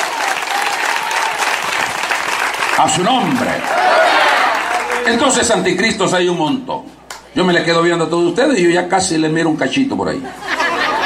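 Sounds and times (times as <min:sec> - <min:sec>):
congregation applauding during a church service: 0:00.0 - 0:05.9
speech: 0:02.8 - 0:04.4, 0:05.0 - 0:10.5
laughter: 0:10.2 - 0:11.0.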